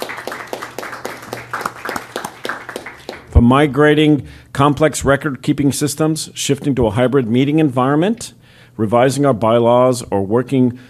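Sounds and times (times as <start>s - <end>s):
round of applause: 0.0s - 3.4s
speech: 3.4s - 10.8s.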